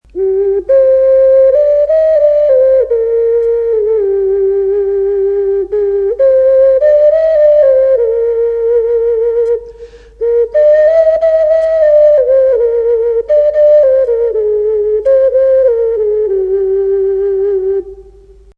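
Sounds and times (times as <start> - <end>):
ocarina: 0.1 - 18.5.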